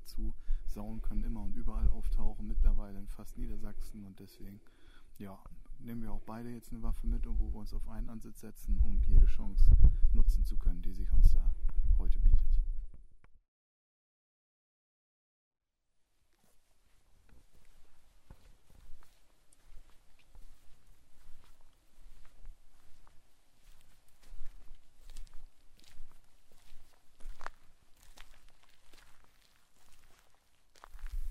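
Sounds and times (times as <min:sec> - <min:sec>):
speech: 0:00.8 - 0:12.6
footsteps along a tractor lane through a grain field: 0:16.1 - 0:31.2.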